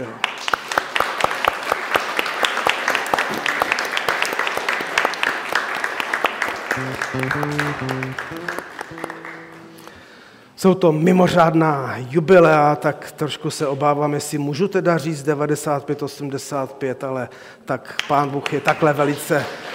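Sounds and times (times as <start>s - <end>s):
audience applauding: 0.0s - 10.0s
speech: 7.1s - 9.2s, 10.6s - 19.7s.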